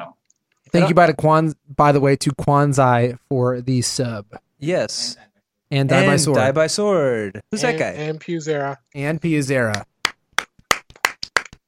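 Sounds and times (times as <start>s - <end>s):
speech: 0.1s - 9.9s
single person clapping: 9.7s - 11.6s.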